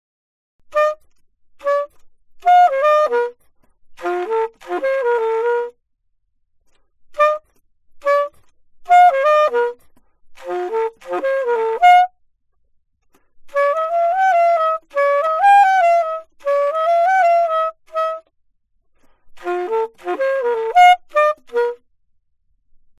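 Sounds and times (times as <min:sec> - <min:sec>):
alto saxophone: 0:00.7 - 0:05.8, 0:07.1 - 0:12.2, 0:13.1 - 0:18.4, 0:19.0 - 0:21.9.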